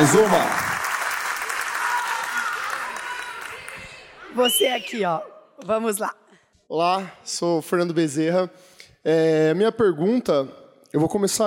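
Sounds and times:
speech: 0:00.0 - 0:00.7, 0:04.4 - 0:11.4
audience applause: 0:00.0 - 0:04.0.

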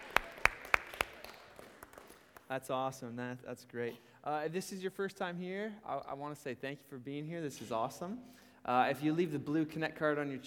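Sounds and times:
audience round of applause: 0:00.0 - 0:02.4
speech: 0:02.5 - 0:10.4.

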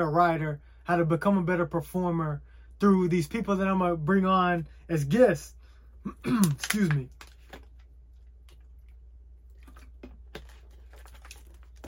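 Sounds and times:
speech: 0:00.0 - 0:07.2
low steady hum: 0:00.0 - 0:11.8
person sipping spring water: 0:08.2 - 0:11.0.

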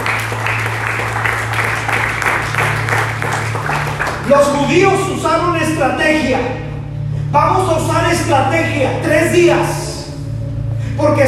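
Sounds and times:
audience applauding loudly: 0:00.0 - 0:04.6
low sustained tone humming: 0:00.0 - 0:11.2
speech: 0:04.3 - 0:06.7, 0:07.3 - 0:09.8, 0:11.0 - 0:11.2.

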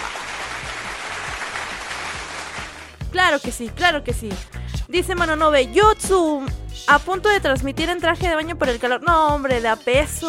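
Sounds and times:
applause: 0:00.0 - 0:03.0
speech: 0:03.1 - 0:10.2.

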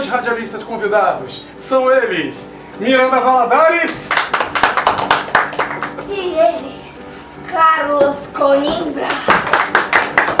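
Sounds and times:
speech: 0:00.1 - 0:04.7, 0:07.5 - 0:09.8
applause: 0:04.1 - 0:06.0, 0:09.1 - 0:10.3.

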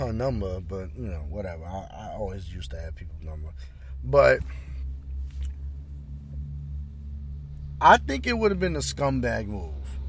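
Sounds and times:
speech: 0:00.0 - 0:04.7, 0:07.8 - 0:09.8
truck passing by: 0:00.0 - 0:10.0.

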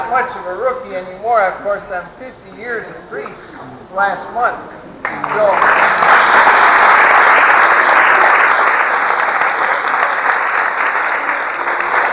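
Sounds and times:
speech: 0:00.1 - 0:07.0
audience applause during a priest's talk marking fifty years of priesthood: 0:05.0 - 0:12.1.

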